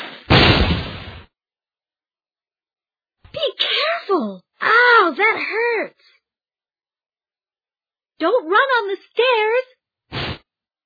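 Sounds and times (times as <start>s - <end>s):
firecracker bang: 0.0s - 1.3s
speech: 4.1s - 6.1s, 8.2s - 9.8s.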